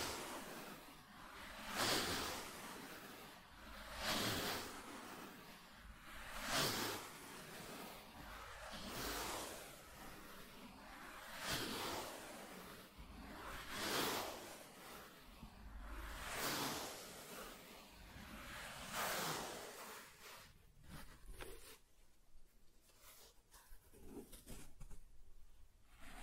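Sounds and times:
soft tracing strokes across a surface: 0:00.0 - 0:26.2.

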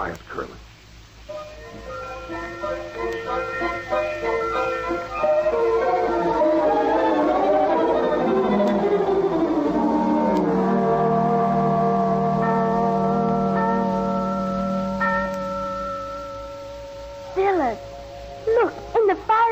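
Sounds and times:
bells ringing: 0:01.3 - 0:19.5.

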